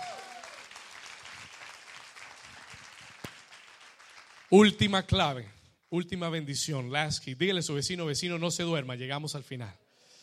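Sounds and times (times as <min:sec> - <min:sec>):
audience applauding loudly: 0:00.0 - 0:06.0
speech: 0:04.5 - 0:09.8.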